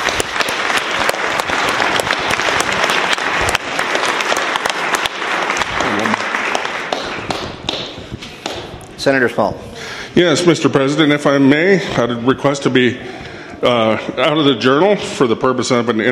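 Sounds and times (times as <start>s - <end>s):
audience applause: 0.0s - 8.6s
speech: 9.0s - 16.0s.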